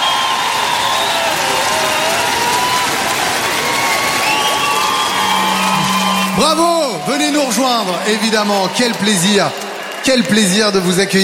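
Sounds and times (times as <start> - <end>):
whistles from concert crowd in Lille: 0.0 - 2.8, 3.5 - 7.2
concert crowd in Lille clapping for a band: 0.0 - 11.2
speech: 6.4 - 11.2.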